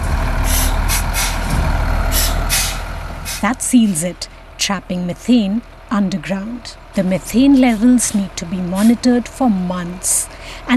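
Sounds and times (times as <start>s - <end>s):
heavy cement mixer truck engine rumbling: 0.0s - 10.7s
air brakes hissing: 0.4s - 3.5s
speech: 3.4s - 10.7s.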